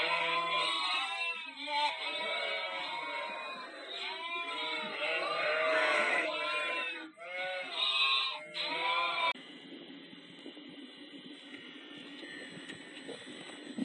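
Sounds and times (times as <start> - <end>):
flock of sheep bleating: 0.0 - 9.4.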